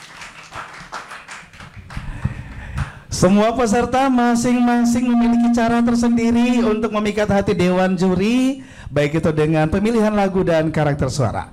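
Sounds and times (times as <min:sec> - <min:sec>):
audience applause: 0:00.0 - 0:03.0
speech: 0:03.2 - 0:11.5.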